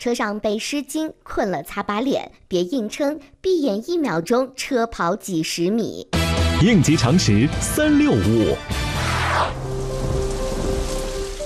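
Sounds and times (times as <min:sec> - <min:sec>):
speech: 0:00.0 - 0:08.8
thunder-like rumble: 0:09.5 - 0:11.4
heavy rain pouring: 0:09.6 - 0:11.4.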